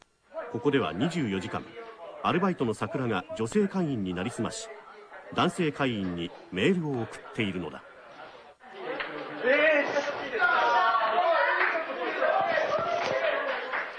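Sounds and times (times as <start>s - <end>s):
speech: 0.5s - 7.9s, 9.4s - 10.5s
group of workers cheering and whooping: 10.3s - 13.8s.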